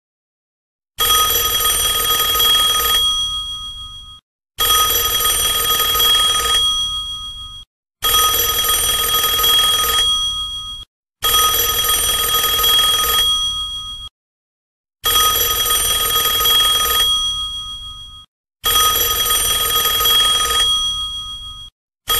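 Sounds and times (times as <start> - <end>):
antique telephone: 1.0 - 3.4, 4.6 - 6.8, 8.0 - 13.6, 15.0 - 17.5, 18.6 - 21.5.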